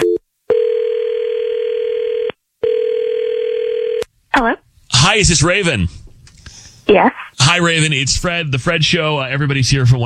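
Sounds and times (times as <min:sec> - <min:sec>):
phone line ringing tone: 0:00.0 - 0:04.0
speech: 0:05.2 - 0:06.0, 0:06.9 - 0:10.0.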